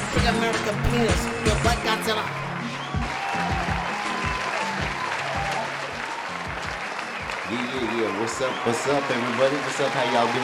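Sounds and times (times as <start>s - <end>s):
audience applause: 0.0s - 10.4s
faint cheering: 0.0s - 10.4s
speech: 0.2s - 3.0s, 7.5s - 10.4s.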